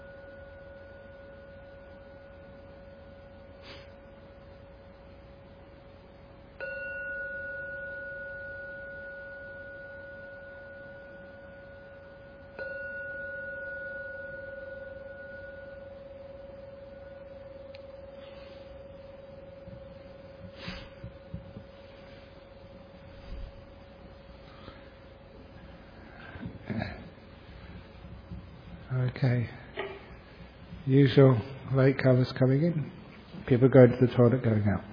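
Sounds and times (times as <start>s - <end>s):
gong ringing: 6.6s - 17.5s
speech: 29.1s - 29.6s, 30.9s - 34.9s.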